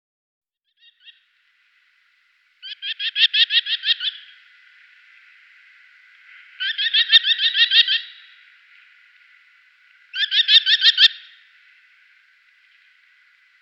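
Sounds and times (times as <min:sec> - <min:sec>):
merlin chattering: 0:02.6 - 0:04.4, 0:06.1 - 0:13.6.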